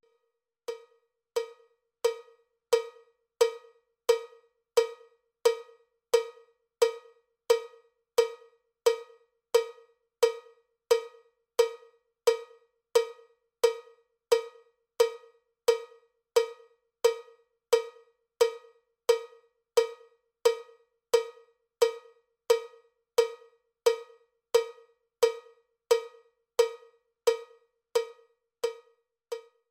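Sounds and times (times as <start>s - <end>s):
cowbell click track: 0.7s - 29.6s.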